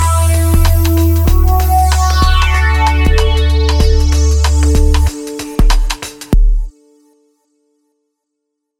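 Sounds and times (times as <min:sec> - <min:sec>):
synth pad: 0:00.0 - 0:05.2.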